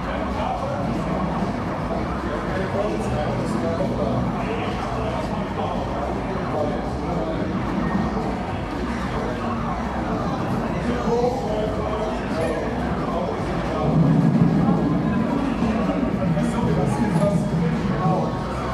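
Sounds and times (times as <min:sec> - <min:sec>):
overlapping chatter in a busy gaming arcade: 0:00.0 - 0:18.7
low rumble: 0:13.6 - 0:18.0.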